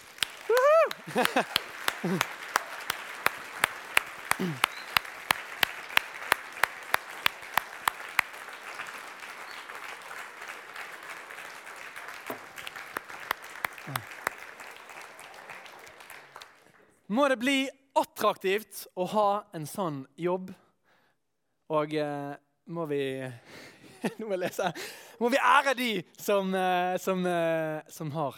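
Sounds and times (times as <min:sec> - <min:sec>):
applause: 0:00.0 - 0:17.1
laughter: 0:00.5 - 0:03.6, 0:04.2 - 0:05.0, 0:13.8 - 0:14.1, 0:23.8 - 0:25.0
speech: 0:01.1 - 0:02.4, 0:04.4 - 0:04.7, 0:17.2 - 0:20.6, 0:21.7 - 0:28.3.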